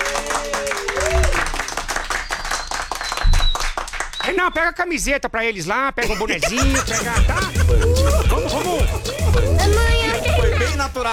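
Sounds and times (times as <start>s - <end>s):
studio audience clapping: 0.0s - 4.5s
speech: 4.3s - 11.1s
laughter: 6.0s - 10.9s.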